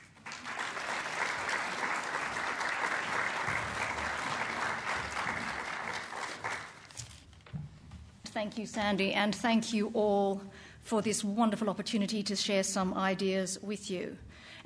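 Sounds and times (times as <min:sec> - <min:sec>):
audience applause welcoming the director of the Museum of Australian Democracy: 0:00.0 - 0:07.0
speech: 0:08.4 - 0:14.6.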